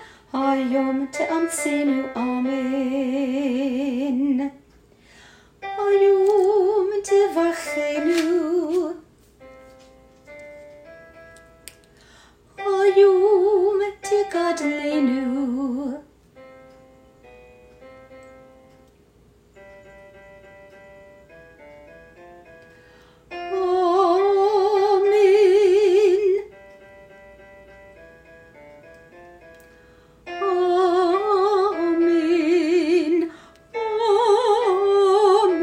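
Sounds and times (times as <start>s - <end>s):
soprano singing: 0.0s - 4.6s, 5.6s - 9.1s, 12.6s - 16.1s, 23.3s - 26.6s, 30.3s - 35.6s.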